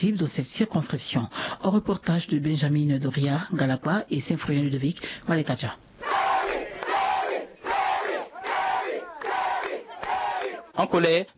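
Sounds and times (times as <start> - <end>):
speech: 0.0 - 6.2, 10.8 - 11.3
protesters chanting slogans in the street: 6.0 - 10.8.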